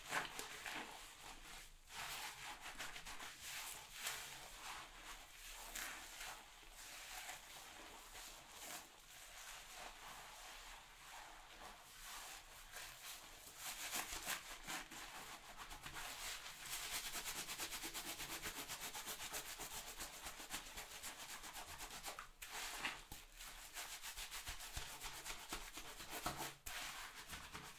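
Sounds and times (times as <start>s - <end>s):
hair salon rubbing and scrubbing: 0.0s - 27.7s.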